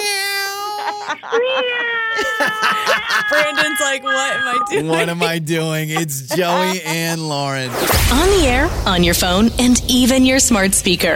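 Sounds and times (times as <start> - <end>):
people imitating a cat meowing in unison: 0.0 - 5.2
laughter: 0.0 - 7.5
speech: 1.3 - 11.1.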